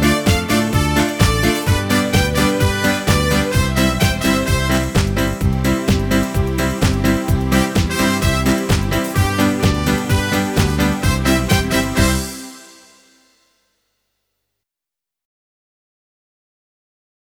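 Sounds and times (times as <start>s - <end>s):
bal musette dance music playback: 0.0s - 13.2s.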